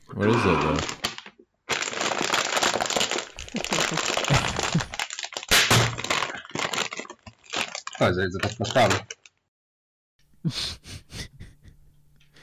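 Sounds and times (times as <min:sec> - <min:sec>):
speech: 0:00.2 - 0:01.0, 0:08.0 - 0:09.2, 0:10.5 - 0:10.7
bag of barbecue chips being cracked open, plastic crinkling: 0:00.4 - 0:09.4.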